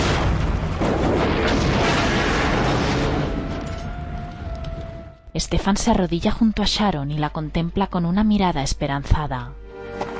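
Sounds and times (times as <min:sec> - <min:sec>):
helicopter exploding in a large fireball: 0:00.0 - 0:03.9
speech: 0:05.4 - 0:10.1.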